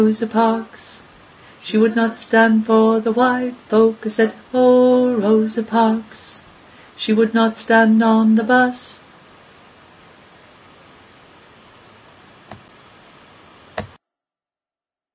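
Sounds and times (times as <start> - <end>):
tenor singing: 0.0 - 9.0.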